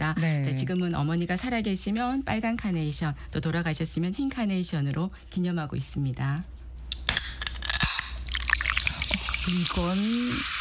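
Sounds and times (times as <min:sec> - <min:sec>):
speech: 0:00.6 - 0:06.6, 0:09.5 - 0:10.5
can of Coca-Cola popped open: 0:06.9 - 0:10.5
Coca-Cola carbonation fizzing: 0:07.7 - 0:10.5.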